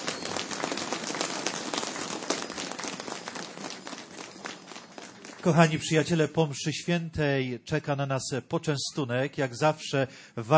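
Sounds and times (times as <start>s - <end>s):
crowd clapping: 0.0s - 6.5s
speech: 5.4s - 10.5s.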